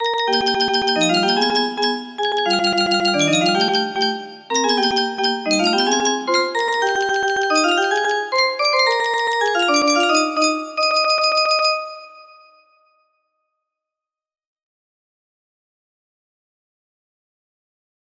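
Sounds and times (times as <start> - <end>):
music box melody: 0.0 - 12.3.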